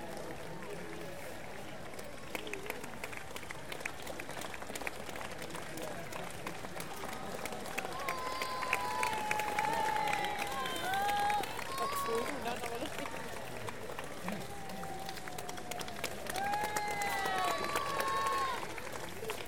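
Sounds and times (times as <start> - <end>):
street crowd applause at the London Marathon: 0.0 - 19.4
street crowd cheering at the London Marathon: 5.7 - 19.4.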